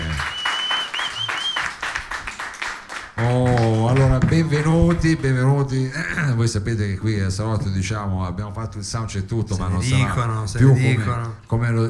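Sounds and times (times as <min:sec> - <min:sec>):
audience applause: 0:00.0 - 0:05.4
speech: 0:03.2 - 0:11.8.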